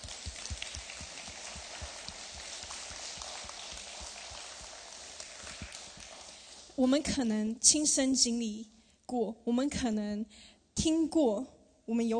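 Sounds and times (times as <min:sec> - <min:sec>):
crowd clapping: 0:00.0 - 0:06.8
speech: 0:06.8 - 0:12.1.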